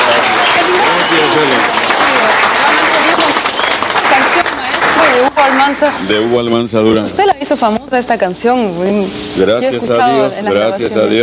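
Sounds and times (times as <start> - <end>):
audience applause at a live music event: 0.0 - 6.0
speech: 5.7 - 11.2.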